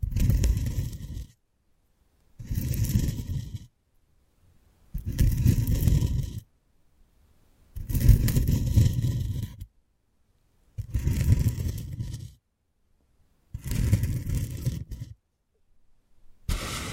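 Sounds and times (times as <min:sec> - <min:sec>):
ear picking with props: 0:00.0 - 0:01.4, 0:02.4 - 0:03.7, 0:05.0 - 0:06.5, 0:07.8 - 0:09.7, 0:10.8 - 0:12.4, 0:13.6 - 0:15.2, 0:16.5 - 0:16.9.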